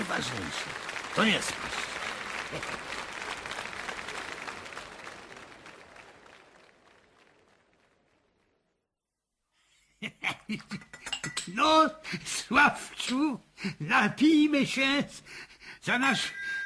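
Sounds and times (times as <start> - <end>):
crowd applause: 0.0 - 8.7
speech: 0.2 - 1.9, 2.5 - 3.0, 10.5 - 10.8, 11.6 - 16.4.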